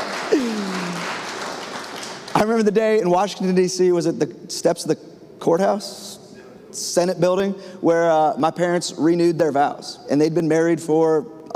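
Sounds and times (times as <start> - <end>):
audience applause: 0.0 - 2.4
speech: 2.4 - 6.2, 6.8 - 11.5.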